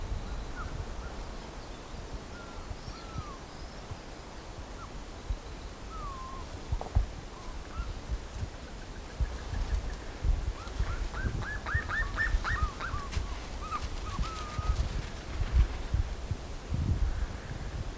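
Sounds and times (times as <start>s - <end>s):
background hiss: 0.0s - 17.9s
bird calls of whistled notes: 10.9s - 14.8s.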